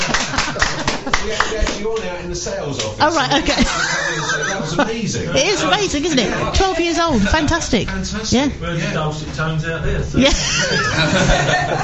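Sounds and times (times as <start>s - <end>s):
laughter: 0.0s - 2.0s, 3.3s - 7.6s, 10.2s - 11.8s
audience clapping: 0.0s - 2.1s
speech: 1.3s - 11.8s.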